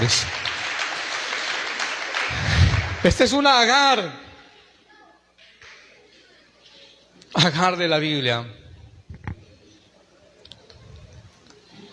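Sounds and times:
speech: 0.0s - 0.4s, 3.0s - 4.2s, 7.3s - 8.6s
audience applause: 0.0s - 3.4s.

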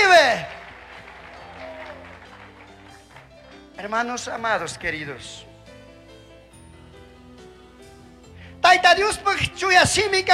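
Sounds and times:
audience applause: 0.0s - 3.7s
speech: 3.8s - 5.5s, 8.8s - 10.3s.

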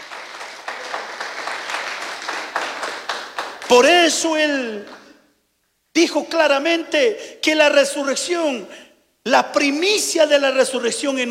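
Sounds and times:
audience applause: 0.0s - 3.9s
speech: 3.7s - 5.0s, 6.0s - 11.2s.

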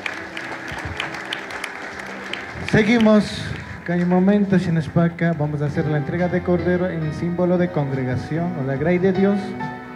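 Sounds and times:
church congregation applauding: 0.0s - 4.5s
speech: 2.7s - 9.8s.

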